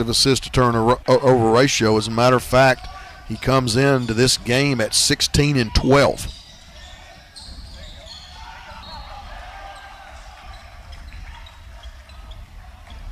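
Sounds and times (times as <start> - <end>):
speech: 0.0 - 6.4
basketball bouncing on the court before a free throw in a college game: 5.8 - 13.1.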